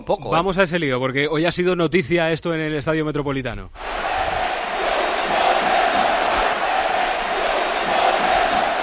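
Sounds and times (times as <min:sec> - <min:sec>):
speech: 0:00.0 - 0:04.4
huge football stadium crowd chanting in unison: 0:03.8 - 0:08.8.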